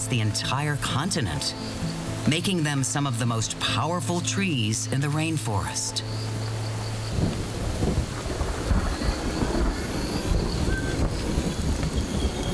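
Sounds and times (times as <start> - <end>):
speech: 0.1 - 6.4
rumbling thunder: 7.1 - 12.5.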